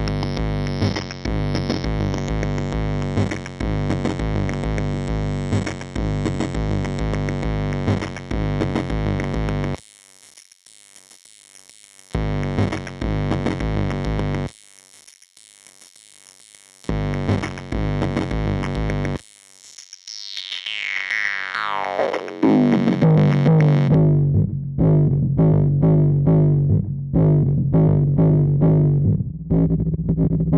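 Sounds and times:
EHX Mainframe drum machine: 0.0 - 9.8, 12.2 - 14.5, 16.9 - 19.2, 21.7 - 30.5.

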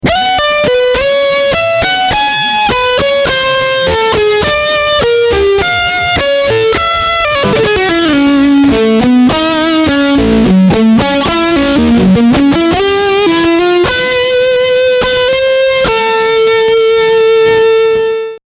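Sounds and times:
high gain lead guitar: 0.0 - 18.4.

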